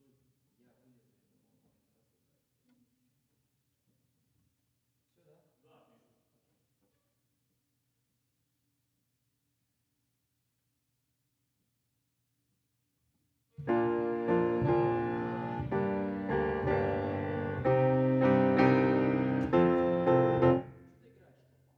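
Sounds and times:
piano: 13.6 - 21.0.

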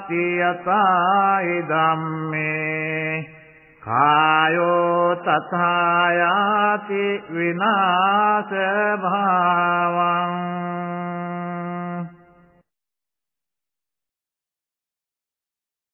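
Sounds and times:
chanting: 0.0 - 12.2.

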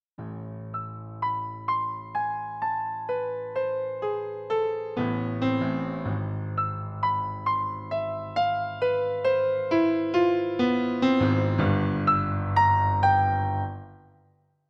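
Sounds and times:
piano: 0.2 - 14.6.

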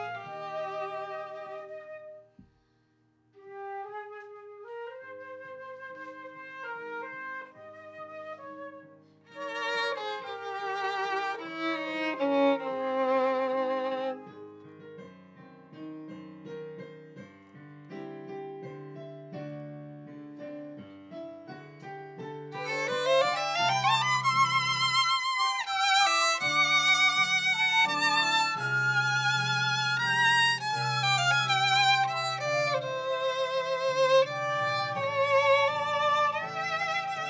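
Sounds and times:
viola: 0.0 - 2.6, 3.4 - 14.8, 22.5 - 37.2.

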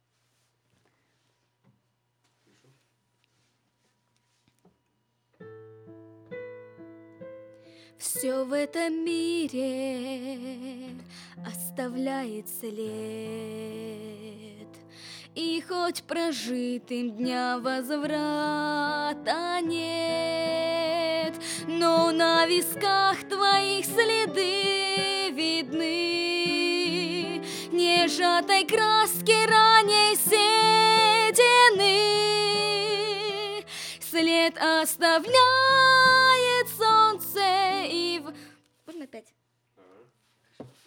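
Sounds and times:
vocals: 7.9 - 39.3.

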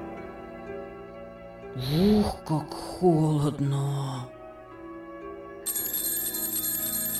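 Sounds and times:
speech: 1.8 - 4.4
alarm clock ringing loudly: 5.7 - 7.1.

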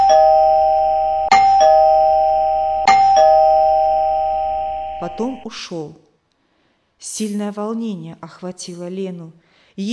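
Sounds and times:
doorbell ringing: 0.0 - 5.6
speech: 5.1 - 6.0, 7.0 - 9.9.

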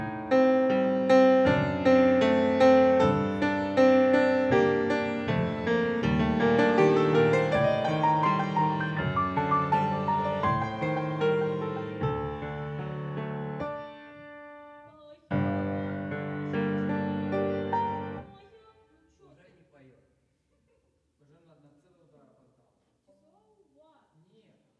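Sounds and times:
piano: 0.0 - 18.4.

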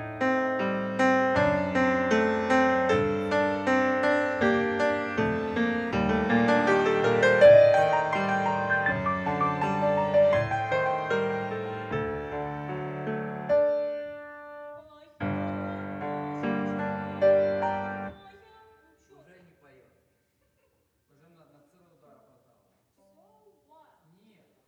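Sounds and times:
piano: 0.0 - 18.3.

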